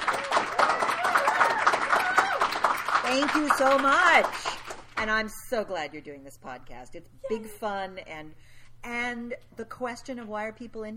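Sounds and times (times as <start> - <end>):
audience applause: 0.0 - 5.0
speech: 3.1 - 10.9.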